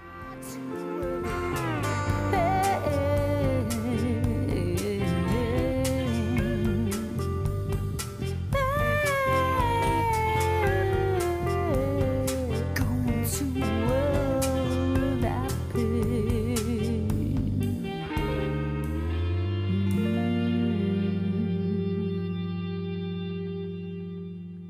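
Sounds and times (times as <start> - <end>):
chromatic harmonica sustained reedy notes with reverb: 0.0 - 12.0, 17.8 - 24.6
music track: 0.0 - 24.6.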